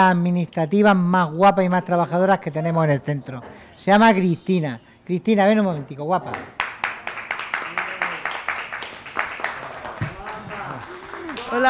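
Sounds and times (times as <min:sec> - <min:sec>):
speech: 0:00.0 - 0:06.6
applause: 0:06.3 - 0:11.6.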